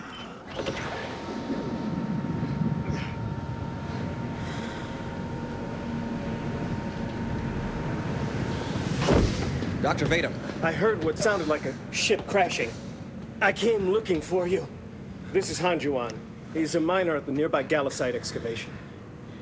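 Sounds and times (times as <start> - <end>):
fierce storm winds: 0.4 - 12.0
speech: 9.8 - 12.8, 13.4 - 18.8.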